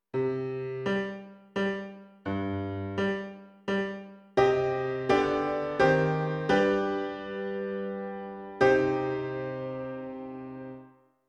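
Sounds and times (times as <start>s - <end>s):
piano: 0.0s - 11.2s.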